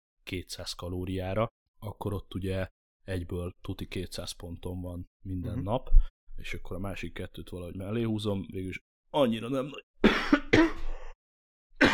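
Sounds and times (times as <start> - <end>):
speech: 0.3 - 10.7
person coughing and clearing throat while choking: 10.0 - 11.2.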